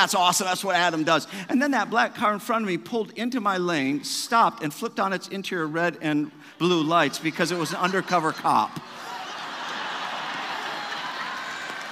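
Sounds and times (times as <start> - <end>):
speech: 0.0 - 9.0
laughter: 6.6 - 11.6
hand clapping: 11.2 - 11.9.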